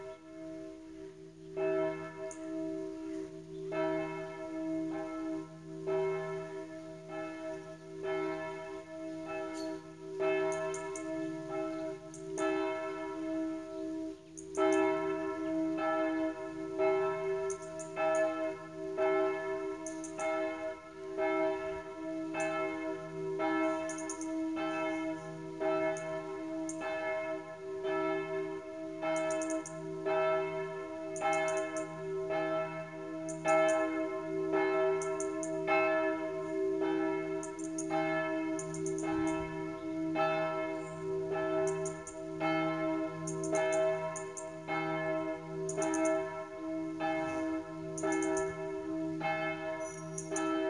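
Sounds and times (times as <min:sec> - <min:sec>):
bells ringing: 0:01.0 - 0:50.6.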